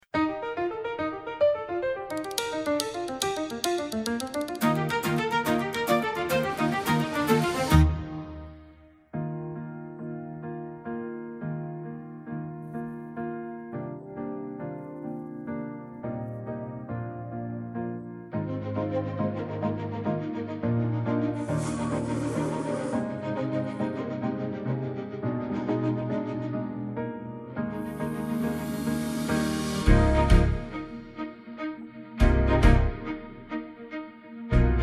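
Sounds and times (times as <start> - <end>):
instrumental music: 0.0 - 34.8.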